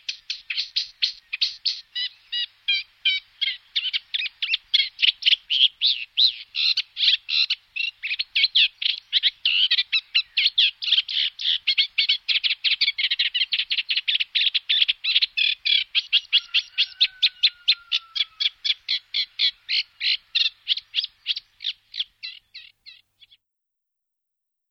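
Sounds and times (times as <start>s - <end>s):
reed warbler song: 0.0s - 23.4s.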